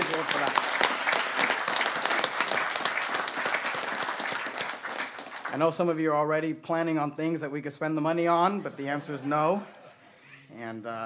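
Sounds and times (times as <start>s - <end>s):
audience applause: 0.0s - 6.1s
speech: 5.6s - 9.8s, 10.6s - 11.0s
laughter: 8.2s - 10.7s.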